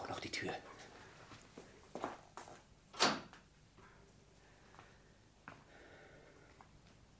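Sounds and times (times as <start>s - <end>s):
speech: 0.1s - 0.7s
wooden window shutters being swung closed: 2.9s - 3.3s.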